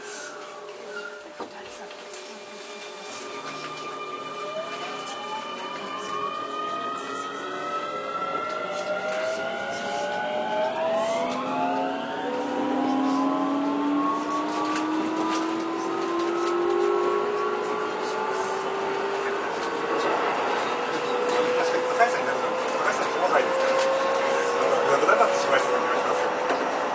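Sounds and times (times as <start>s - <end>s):
Keio 9000 series train running from Takaosanguchi to Tsutsujigaoka: 0.0s - 17.2s, 18.4s - 26.9s.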